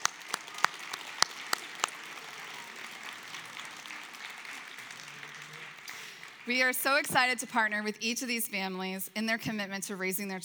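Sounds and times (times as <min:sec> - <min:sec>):
audience applause: 0:00.0 - 0:07.8
speech: 0:06.5 - 0:10.4.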